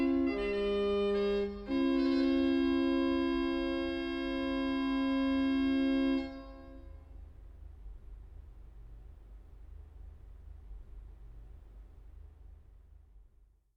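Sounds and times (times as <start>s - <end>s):
organ playing a bugle song: 0.0s - 6.9s.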